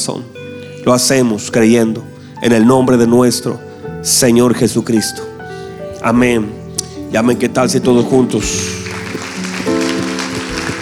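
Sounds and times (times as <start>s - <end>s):
speech: 0.0s - 5.4s, 6.0s - 8.8s
audience applause: 8.8s - 10.8s.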